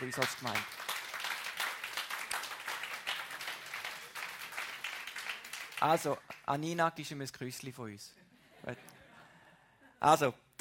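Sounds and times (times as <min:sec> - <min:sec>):
speech: 0:00.0 - 0:00.8, 0:05.8 - 0:09.0, 0:10.0 - 0:10.5
room full of people applauding: 0:00.0 - 0:06.5.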